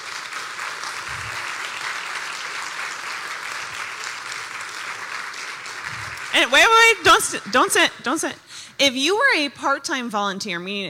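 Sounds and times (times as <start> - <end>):
audience applause: 0.0 - 7.0
speech: 6.4 - 10.8.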